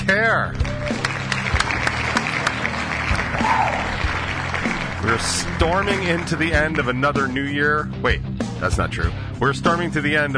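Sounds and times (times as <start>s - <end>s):
speech: 0.1s - 1.0s, 5.0s - 10.3s
applause: 0.5s - 7.0s.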